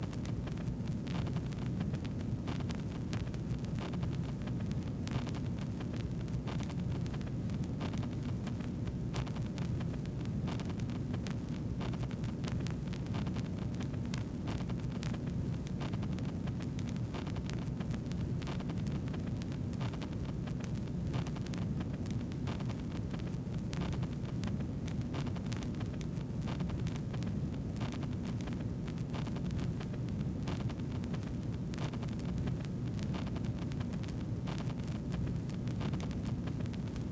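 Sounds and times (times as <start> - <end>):
faked vinyl crackle: 0.0 - 37.1.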